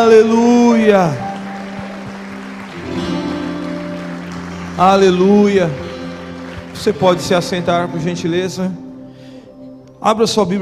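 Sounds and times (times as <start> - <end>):
speech: 0.0 - 1.2, 4.8 - 5.8, 6.8 - 8.8, 10.0 - 10.5
audience applauding: 0.0 - 8.3.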